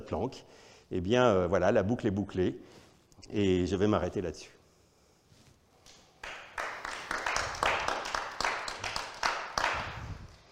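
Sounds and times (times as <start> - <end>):
speech: 0.1 - 4.6
sparse applause from small audience: 6.2 - 10.3.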